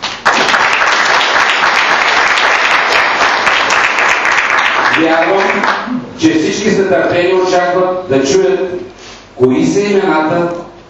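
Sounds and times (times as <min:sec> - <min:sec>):
audience applause: 0:00.0 - 0:05.9
speech: 0:05.0 - 0:10.8.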